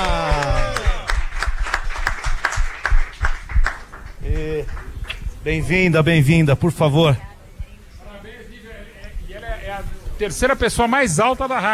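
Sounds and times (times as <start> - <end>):
few people clapping in a radio studio: 0.0 - 5.3
loud overlapping voices: 0.0 - 6.0
speech: 5.4 - 7.3, 10.2 - 11.7.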